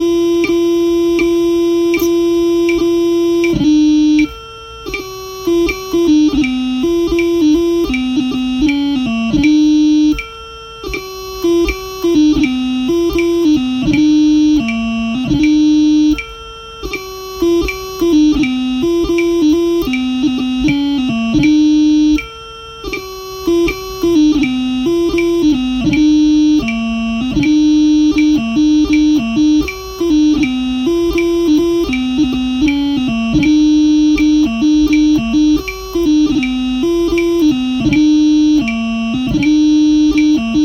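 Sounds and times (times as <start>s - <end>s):
pipes playing a jig: 0.0s - 40.6s.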